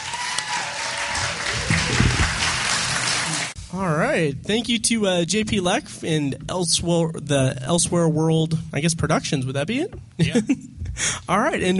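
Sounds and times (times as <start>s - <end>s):
theater audience applause: 0.0s - 3.6s
speech: 3.8s - 11.7s.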